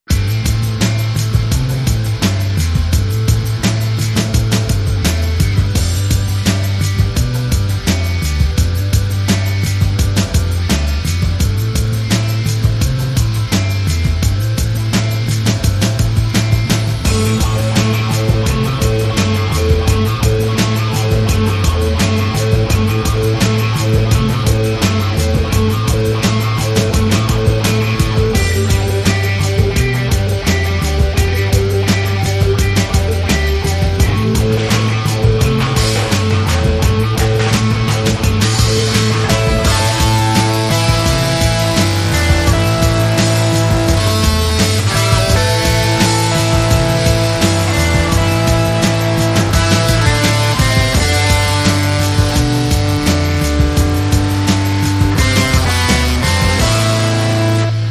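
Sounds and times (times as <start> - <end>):
guitar: 0.0 - 57.8.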